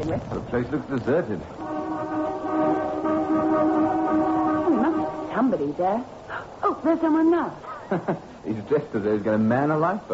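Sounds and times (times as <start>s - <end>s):
speech: 0.1s - 2.1s, 5.4s - 10.1s
car horn sounding: 1.6s - 5.5s.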